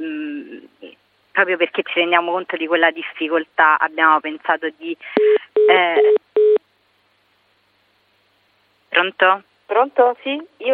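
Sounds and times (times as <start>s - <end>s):
speech: 1.4s - 6.2s, 9.0s - 10.7s
telephone busy tone from a dropped call: 5.6s - 6.6s.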